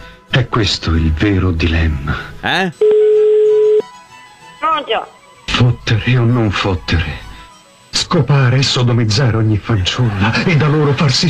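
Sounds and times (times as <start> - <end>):
speech: 0.4 - 2.9, 4.8 - 7.3, 8.1 - 11.2
telephone tone while a prank call is placed: 2.8 - 3.9
laughter: 9.8 - 11.2.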